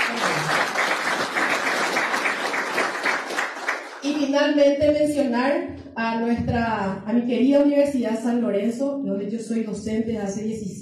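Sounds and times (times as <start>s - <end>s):
audience applause: 0.0s - 4.1s
speech: 4.1s - 10.8s.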